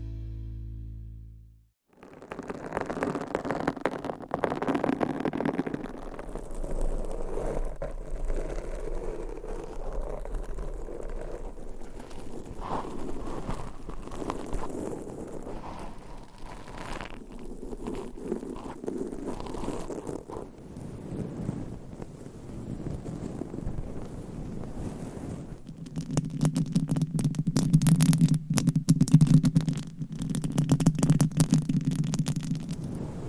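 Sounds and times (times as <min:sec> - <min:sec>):
low hum: 0:00.0 - 0:01.6
nails scratching and rubbing microphone covers: 0:02.0 - 0:24.6, 0:25.4 - 0:33.0.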